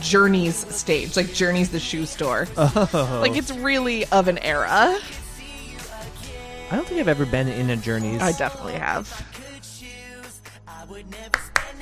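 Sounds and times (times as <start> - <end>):
speech: 0.0 - 5.2, 6.7 - 9.4
laughter: 2.6 - 3.6
ironic hand clapping: 11.3 - 11.8.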